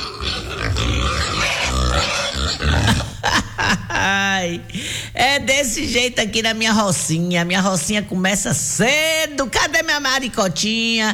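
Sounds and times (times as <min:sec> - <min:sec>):
pig grunting while searching for food: 0:00.0 - 0:03.4
speech: 0:04.4 - 0:11.1.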